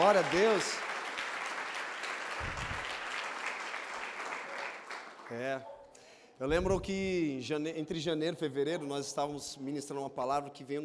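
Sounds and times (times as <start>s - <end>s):
audience applauding: 0.0s - 5.5s
speech: 0.1s - 0.9s, 5.3s - 5.8s, 6.4s - 10.8s.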